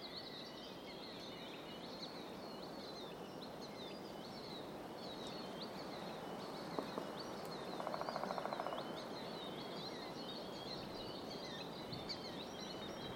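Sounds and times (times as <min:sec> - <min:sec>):
songbirds calling: 0:00.0 - 0:13.1
woodpecker drumming: 0:07.8 - 0:08.8.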